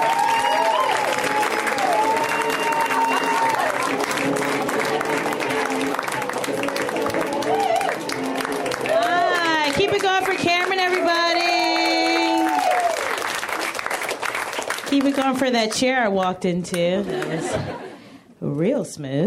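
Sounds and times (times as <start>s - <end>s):
cheers and whoops: 0.0s - 4.2s, 7.1s - 9.8s, 11.0s - 13.2s
audience applause for a comedian: 0.0s - 15.4s, 17.1s - 17.9s
speech: 15.1s - 17.9s, 18.6s - 19.2s
laughter: 17.0s - 18.1s.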